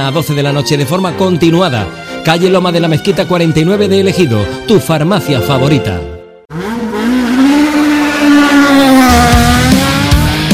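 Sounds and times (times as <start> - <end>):
speech: 0.0 - 6.1
race car engines accelerating hard at a race start: 6.5 - 10.5.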